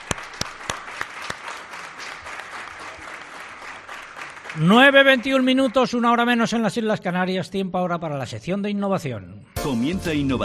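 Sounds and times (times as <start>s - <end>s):
audience applause: 0.0s - 6.2s
speech: 4.6s - 10.4s.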